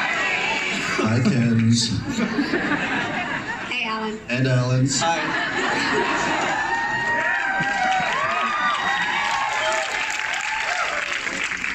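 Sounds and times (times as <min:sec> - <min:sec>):
cheering and whoops: 0:00.0 - 0:00.9, 0:06.0 - 0:11.7
audience applause: 0:00.0 - 0:02.3, 0:05.7 - 0:11.7
laughter: 0:00.0 - 0:03.9, 0:05.0 - 0:09.2
speech: 0:01.1 - 0:03.0, 0:03.9 - 0:06.4.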